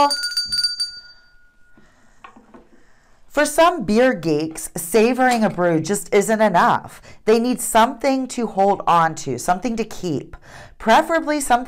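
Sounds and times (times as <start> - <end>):
speech: 0.0 - 0.2, 3.4 - 11.6
desk bell rung to call for a beer: 0.0 - 2.5.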